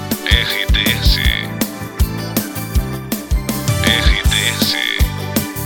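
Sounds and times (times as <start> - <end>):
background music loop for voice-over: 0.2 - 1.7, 3.5 - 5.5.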